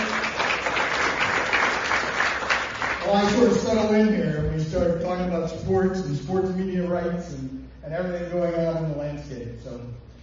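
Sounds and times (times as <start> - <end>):
audience round of applause: 0.0 - 3.5
speech: 3.1 - 10.0.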